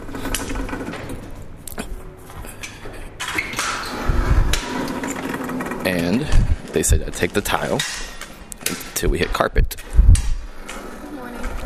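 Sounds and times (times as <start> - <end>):
automatic double doors operating: 0.0 - 11.6
speech: 5.9 - 8.1, 9.0 - 9.7.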